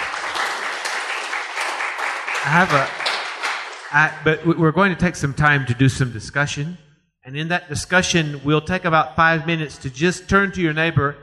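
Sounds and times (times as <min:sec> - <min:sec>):
audience applause: 0:00.0 - 0:04.3
speech: 0:02.4 - 0:03.0, 0:03.9 - 0:11.2.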